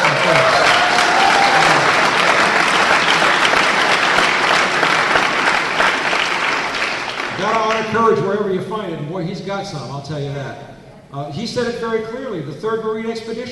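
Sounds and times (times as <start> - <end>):
audience applause: 0.0 - 8.1
speech: 7.9 - 13.5.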